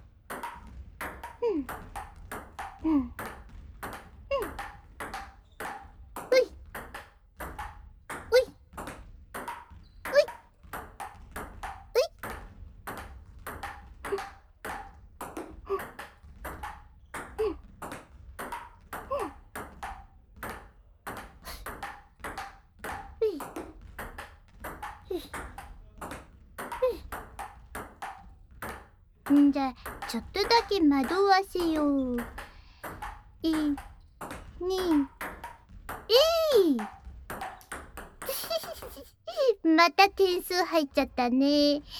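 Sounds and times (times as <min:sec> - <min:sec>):
ping-pong ball bouncing between paddle and table: 0:00.3 - 0:39.0
speech: 0:01.6 - 0:02.0, 0:02.8 - 0:03.4, 0:29.5 - 0:32.4, 0:33.4 - 0:33.9, 0:34.6 - 0:35.1, 0:39.8 - 0:41.9
laughter: 0:38.3 - 0:39.6.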